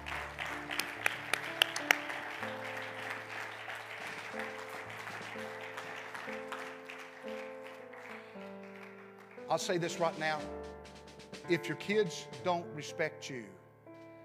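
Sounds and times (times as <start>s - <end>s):
large crowd clapping in sustained applause: 0.0s - 10.5s
held organ-like chords: 0.0s - 13.9s
speech: 9.5s - 10.7s, 11.5s - 13.6s.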